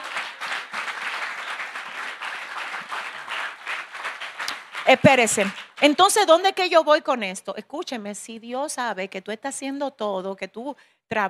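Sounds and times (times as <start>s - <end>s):
audience applause: 0.0s - 6.0s
speech: 4.9s - 11.2s.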